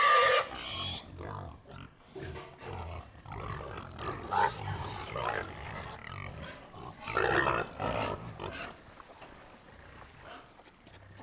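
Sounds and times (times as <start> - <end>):
pig grunting: 0.0 - 8.8.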